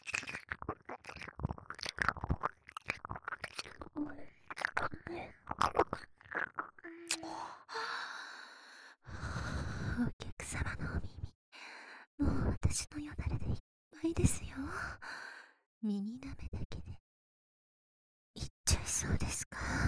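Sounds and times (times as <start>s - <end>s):
ear licking: 0.0s - 7.4s
whispering in the ear: 9.8s - 11.3s, 12.2s - 14.8s, 15.9s - 17.0s, 18.4s - 19.8s.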